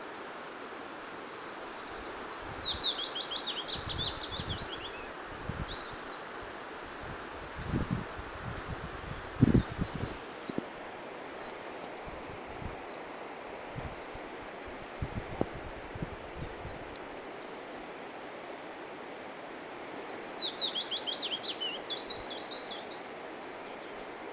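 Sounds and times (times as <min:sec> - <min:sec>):
willow warbler singing: 0:00.0 - 0:24.2.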